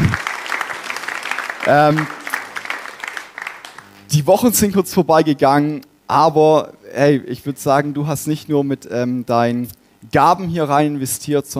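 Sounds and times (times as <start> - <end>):
audience applause: 0.0 - 4.0
speech: 1.6 - 2.2, 4.1 - 11.5.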